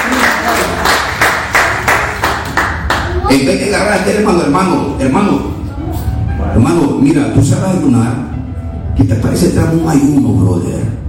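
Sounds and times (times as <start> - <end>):
audience clapping: 0.0 - 3.2
speech: 3.3 - 5.6, 6.6 - 8.4, 9.0 - 11.0.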